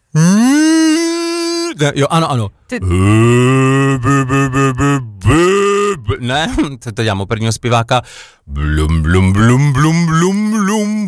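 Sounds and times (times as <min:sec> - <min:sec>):
voice imitating a bellowing cow in heat: 0:00.0 - 0:01.8, 0:02.8 - 0:06.4, 0:08.5 - 0:11.0
speech: 0:01.8 - 0:05.0, 0:06.2 - 0:11.0.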